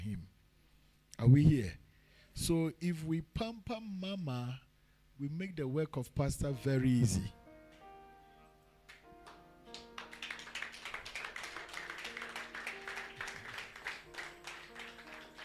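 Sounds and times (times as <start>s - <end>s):
speech: 1.2s - 1.8s, 2.4s - 7.4s
crowd clapping: 8.9s - 15.4s.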